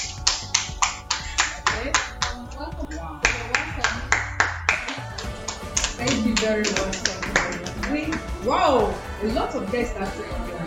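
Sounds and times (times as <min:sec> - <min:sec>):
audience clapping hands in a steady rhythm: 0:00.0 - 0:08.4
speech: 0:06.4 - 0:07.1, 0:07.9 - 0:10.6.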